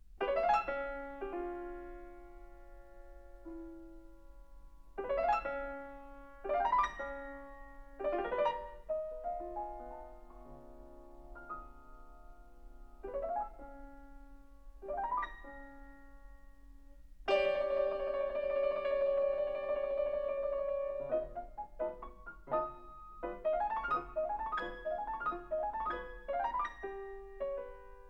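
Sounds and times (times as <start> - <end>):
allegretto piano piece in 6/8: 0.0 - 28.0.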